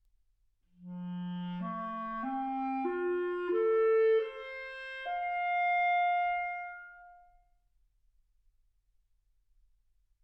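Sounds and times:
clarinet: 0.8s - 7.5s.

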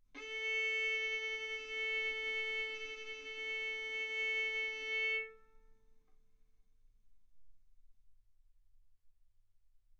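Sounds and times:
violin bowed arco notes: 0.2s - 5.5s.

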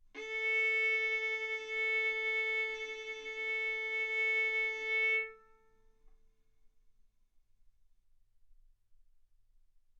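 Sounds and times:
violin bowed arco notes: 0.0s - 5.7s.

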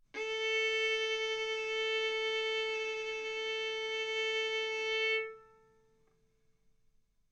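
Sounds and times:
violin bowed mezzo-forte on the A string, A4 and B4: 0.2s - 6.0s.

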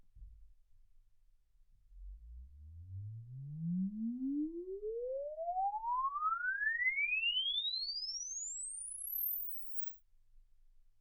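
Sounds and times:
exponential sine sweep from 10 Hz to 24 kHz: 2.0s - 9.9s.

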